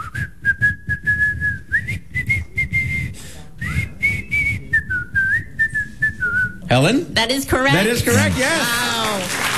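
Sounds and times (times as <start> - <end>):
person whistling a tune: 0.0 - 6.7
speech: 6.7 - 9.4.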